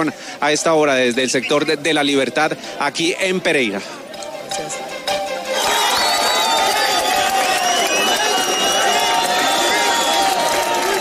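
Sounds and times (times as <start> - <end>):
speech: 0.0 - 4.9
crowd cheering and shouting at a rescue: 5.4 - 10.9.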